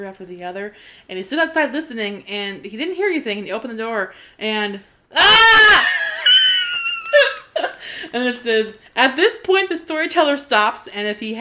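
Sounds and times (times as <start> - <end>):
speech: 0.0 - 6.0, 8.1 - 11.3
storyteller imitating a scream: 5.1 - 6.0.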